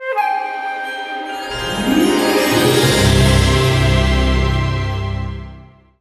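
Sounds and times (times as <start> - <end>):
success sound: 1.5 - 5.6.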